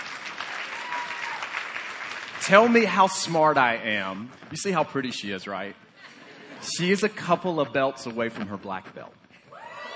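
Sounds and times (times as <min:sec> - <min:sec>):
audience clapping: 0:00.0 - 0:04.1
speech: 0:02.4 - 0:05.8, 0:06.6 - 0:09.2
laughter: 0:06.0 - 0:06.9.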